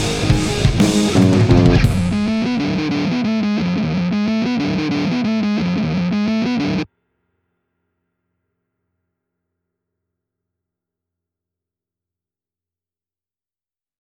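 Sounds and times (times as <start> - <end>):
metal music: 0.0 - 6.8.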